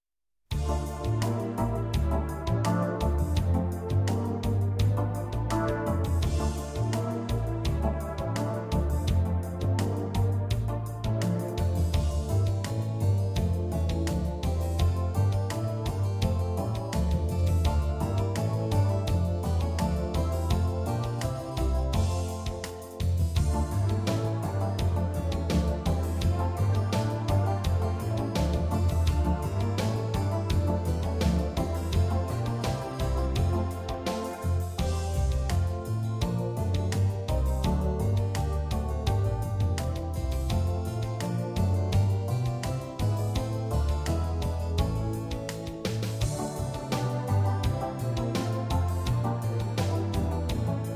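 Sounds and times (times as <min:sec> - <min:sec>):
baroque dance piece: 0:00.5 - 0:50.9.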